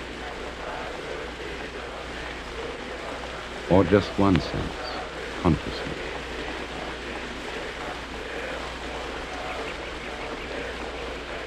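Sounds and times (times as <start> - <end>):
rain falling: 0.0 - 11.4
speech: 3.7 - 4.8, 5.4 - 6.0.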